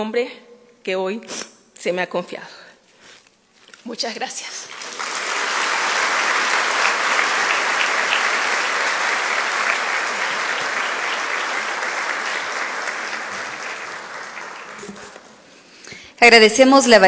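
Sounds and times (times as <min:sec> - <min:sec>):
speech: 0:00.0 - 0:02.6, 0:03.8 - 0:04.8, 0:16.2 - 0:17.0
applause: 0:04.6 - 0:15.6.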